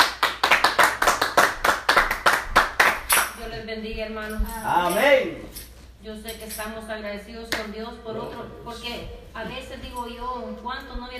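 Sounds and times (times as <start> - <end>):
audience applause: 0.0 - 3.0
speech: 3.7 - 11.1.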